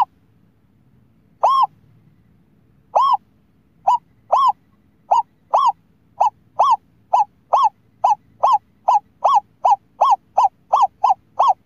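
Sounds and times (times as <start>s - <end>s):
scops owl hooting: 1.4s - 1.8s, 2.9s - 11.6s.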